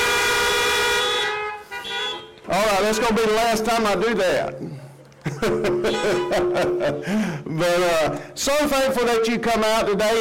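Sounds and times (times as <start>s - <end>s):
car horns honking: 0.0s - 3.2s, 5.6s - 7.1s
speech: 2.5s - 10.1s
laughter: 5.1s - 7.6s.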